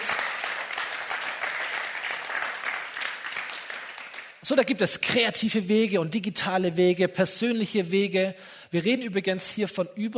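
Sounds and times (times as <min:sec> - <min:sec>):
audience applause: 0:00.0 - 0:04.4
speech: 0:04.5 - 0:10.1.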